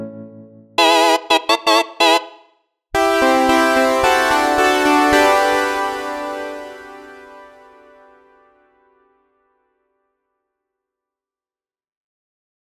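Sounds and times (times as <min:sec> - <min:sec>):
polyphonic synth: 0:00.8 - 0:08.3.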